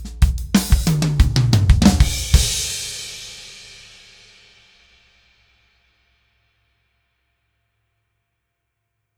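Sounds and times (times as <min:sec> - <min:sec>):
snare drum recorded with symmetrical overhead microphones: 0:00.0 - 0:04.2.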